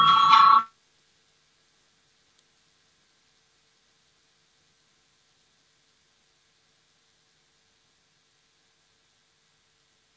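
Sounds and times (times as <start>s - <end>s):
parliamentary voting bell ringing: 0.0s - 0.7s.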